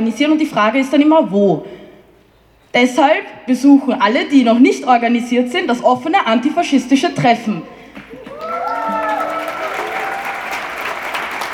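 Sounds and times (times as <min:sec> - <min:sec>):
speech: 0:00.0 - 0:01.8, 0:02.7 - 0:08.1
audience applause: 0:08.0 - 0:11.5.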